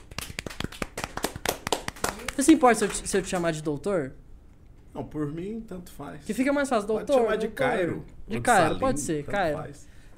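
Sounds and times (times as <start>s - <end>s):
round of applause: 0.0s - 3.5s
speech: 2.4s - 4.2s, 5.0s - 9.9s.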